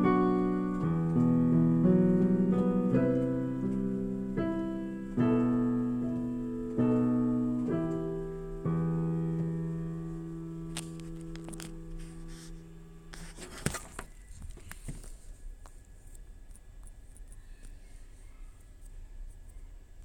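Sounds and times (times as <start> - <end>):
piano part: 0.0 - 13.3.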